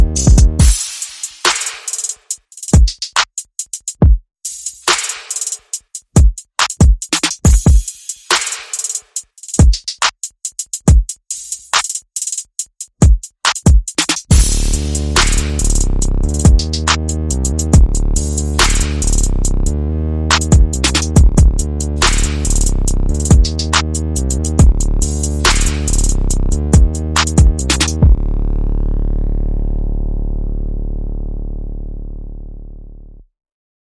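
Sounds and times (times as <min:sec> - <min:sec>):
bass: 0:00.0 - 0:00.7, 0:14.3 - 0:33.3
percussion: 0:00.0 - 0:19.7, 0:20.3 - 0:28.2.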